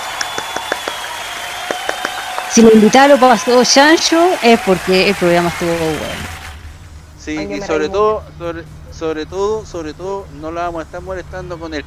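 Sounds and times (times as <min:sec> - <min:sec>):
applause for guest: 0:00.0 - 0:06.6
speech: 0:02.5 - 0:06.4, 0:07.2 - 0:11.8.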